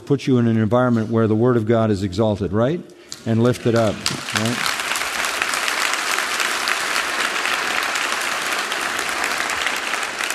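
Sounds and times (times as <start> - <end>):
speech: 0.1 - 4.7
audience applause: 3.5 - 10.3.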